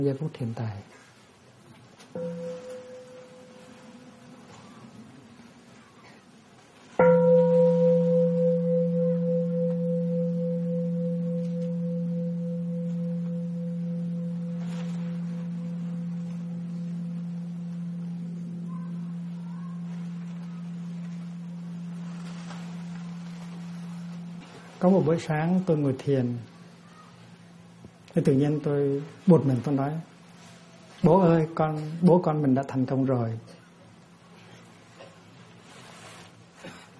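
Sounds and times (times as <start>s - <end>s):
speech: 0.0s - 1.0s, 2.1s - 2.6s, 24.9s - 26.5s, 28.2s - 30.1s, 31.0s - 33.6s
mindfulness bell ringing: 2.2s - 4.1s, 7.0s - 31.5s.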